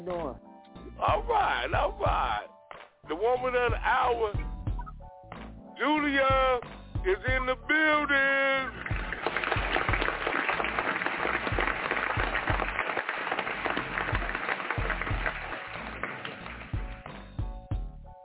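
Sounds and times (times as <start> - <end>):
speech: 0.0 - 4.5, 5.8 - 8.8
crowd clapping: 8.4 - 17.5.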